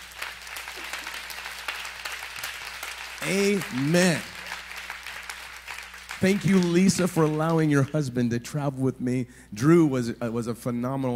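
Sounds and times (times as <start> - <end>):
audience applause: 0.0 - 7.9
speech: 3.2 - 4.3, 6.2 - 11.1.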